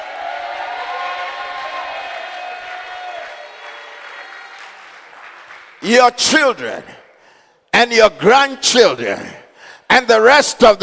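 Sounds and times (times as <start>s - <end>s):
audience clapping: 0.0s - 7.2s
speech: 5.8s - 7.0s, 7.8s - 9.4s, 10.0s - 10.8s.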